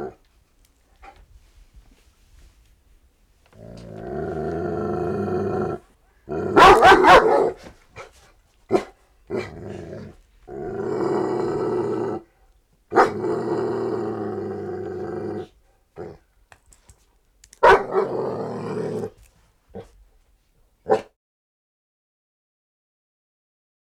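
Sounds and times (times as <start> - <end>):
dog snarling growl: 3.5 - 7.6, 8.8 - 12.3, 12.9 - 16.2, 17.6 - 19.9
dog barking: 6.5 - 8.1, 8.7 - 9.5, 12.9 - 13.2, 17.6 - 18.1, 20.8 - 21.1.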